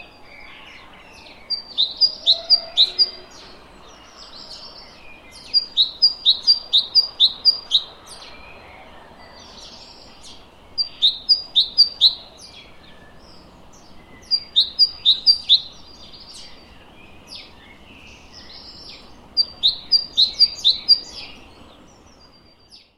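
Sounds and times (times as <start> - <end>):
great tit singing: 0.0 - 22.9.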